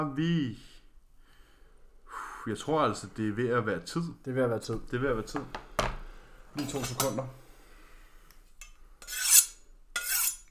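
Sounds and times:
speech: 0:00.0 - 0:00.7, 0:02.4 - 0:05.6, 0:06.6 - 0:07.4
blade being sharpened: 0:09.0 - 0:10.4.

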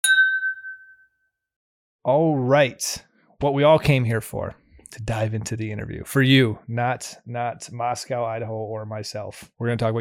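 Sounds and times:
glasses clinking in a toast: 0:00.0 - 0:01.0
speech: 0:02.0 - 0:09.9.

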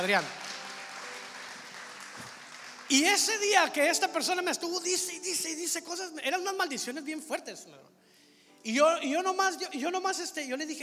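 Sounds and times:
speech: 0:00.0 - 0:00.4, 0:02.9 - 0:08.0, 0:08.6 - 0:10.8
audience applauding: 0:00.0 - 0:05.1.

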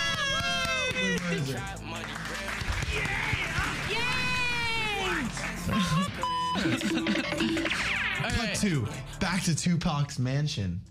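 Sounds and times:
crowd erupting in applause: 0:00.0 - 0:07.6
speech: 0:01.3 - 0:04.2, 0:05.0 - 0:10.8
laughter: 0:05.3 - 0:08.2.

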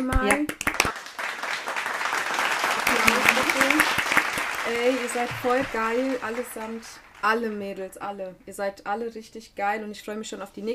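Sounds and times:
speech: 0:00.0 - 0:00.6, 0:05.1 - 0:10.7
crowd applause: 0:00.6 - 0:07.9
faint voices and cheers: 0:02.8 - 0:07.5.

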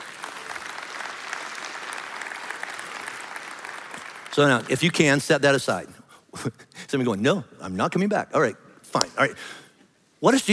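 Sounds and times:
audience applause: 0:00.0 - 0:05.1
speech: 0:04.4 - 0:09.6, 0:10.2 - 0:10.5.

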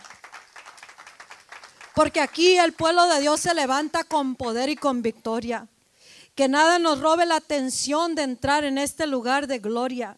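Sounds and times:
audience applauding: 0:00.0 - 0:02.4
speech: 0:02.0 - 0:05.7, 0:06.4 - 0:10.1.

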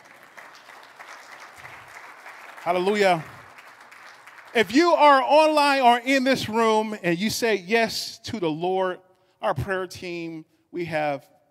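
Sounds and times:
audience clapping: 0:00.0 - 0:05.2
speech: 0:02.6 - 0:03.3, 0:04.5 - 0:11.4.

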